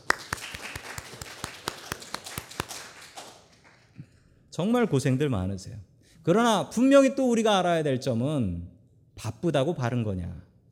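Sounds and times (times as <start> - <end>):
audience applause: 0.0 - 3.9
speech: 4.6 - 10.4.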